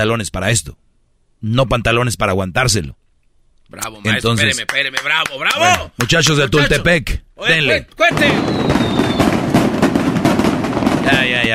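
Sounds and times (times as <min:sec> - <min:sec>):
speech: 0:00.0 - 0:00.8, 0:01.4 - 0:03.0, 0:03.7 - 0:09.0, 0:11.1 - 0:11.5
thin high whistle: 0:08.1 - 0:09.4
firecracker explosions: 0:08.1 - 0:11.5.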